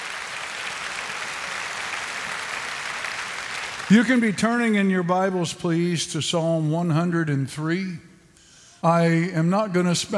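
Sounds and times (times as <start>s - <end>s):
audience clapping hands in praise: 0.0s - 5.1s
speech: 3.9s - 8.1s, 8.8s - 10.1s.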